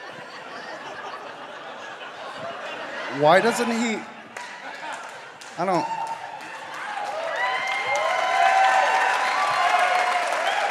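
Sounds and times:
laughter: 0:00.0 - 0:05.6
speech: 0:03.1 - 0:04.1, 0:05.6 - 0:06.0
live audience cheering and applauding: 0:03.2 - 0:10.6.

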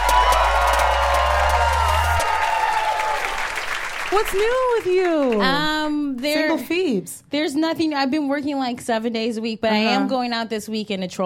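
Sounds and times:
live audience cheering and applauding: 0:00.0 - 0:06.3
speech: 0:04.2 - 0:11.2.

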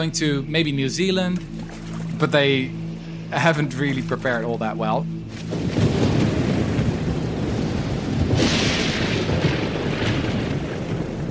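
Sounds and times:
speech: 0:00.0 - 0:01.6, 0:02.2 - 0:05.6
heavy rain hissing: 0:05.1 - 0:11.2
deep rumbling thunder: 0:05.3 - 0:11.2.

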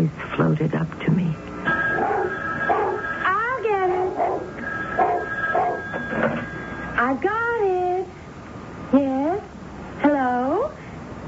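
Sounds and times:
speech: 0:00.0 - 0:01.4, 0:07.0 - 0:08.1, 0:08.9 - 0:09.5
faint steady tone: 0:01.6 - 0:08.2
dog barking: 0:01.9 - 0:03.1, 0:04.0 - 0:05.9.

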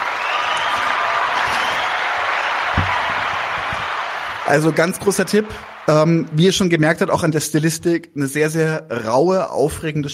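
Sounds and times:
applause: 0:00.0 - 0:06.6
speech: 0:04.5 - 0:10.1.

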